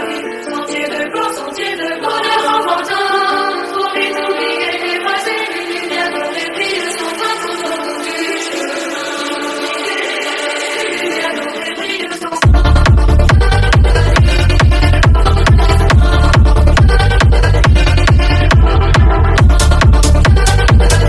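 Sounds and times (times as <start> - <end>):
French techno song: 0.0 - 21.0.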